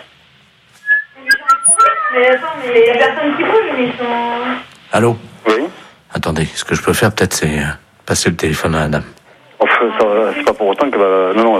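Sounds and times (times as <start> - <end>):
seagull crying: 0.9 - 2.4
speech: 2.1 - 9.2, 9.8 - 11.5.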